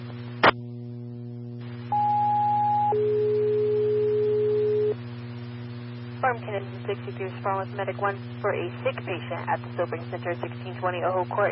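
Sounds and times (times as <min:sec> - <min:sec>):
dispatch alert tones: 0:01.9 - 0:04.9
speech: 0:06.3 - 0:11.5.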